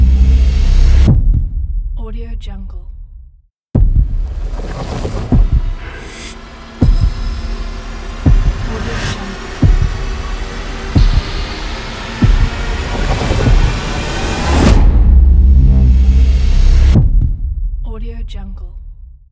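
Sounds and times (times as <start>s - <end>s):
heartbeat tension trailer intro ident: 0.0s - 2.0s, 3.8s - 6.0s, 6.8s - 17.9s.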